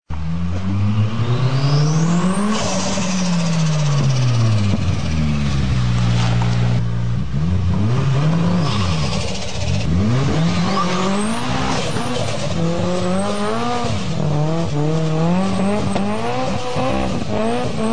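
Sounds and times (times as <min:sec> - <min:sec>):
turbo car engine: 0:00.0 - 0:17.9.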